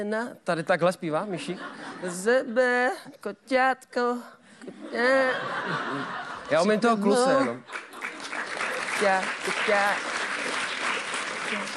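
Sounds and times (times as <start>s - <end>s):
speech: 0.0s - 7.9s, 9.0s - 10.1s, 11.5s - 11.7s
laughter: 4.7s - 8.9s
audience applause: 7.4s - 11.7s.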